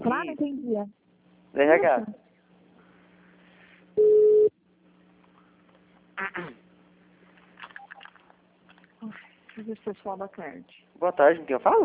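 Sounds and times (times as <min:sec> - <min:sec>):
speech: 0:00.1 - 0:02.2, 0:06.2 - 0:06.6, 0:09.0 - 0:11.8
telephone beep after a dropped call: 0:04.0 - 0:04.5.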